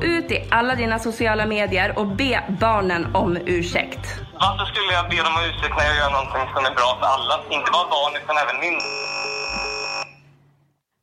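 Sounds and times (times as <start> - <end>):
speech: 0.2 - 9.7
phone line cut-off buzz tone: 8.8 - 10.3.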